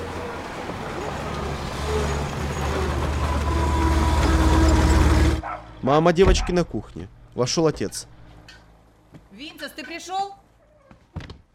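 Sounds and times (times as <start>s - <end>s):
truck driving by: 0.0s - 8.9s
speech: 5.9s - 8.1s, 9.4s - 10.4s.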